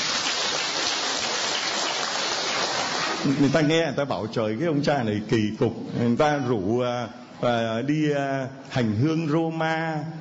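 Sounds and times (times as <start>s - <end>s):
crowd applauding: 0.0s - 3.5s
speech: 3.2s - 10.2s.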